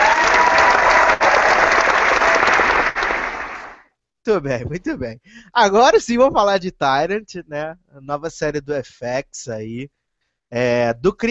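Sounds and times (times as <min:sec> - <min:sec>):
crowd applauding: 0:00.0 - 0:03.9
speech: 0:04.3 - 0:11.2.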